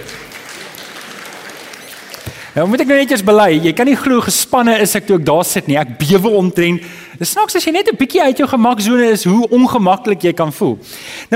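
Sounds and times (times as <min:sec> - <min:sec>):
audience applauding: 0:00.0 - 0:03.2
speech: 0:02.6 - 0:11.3.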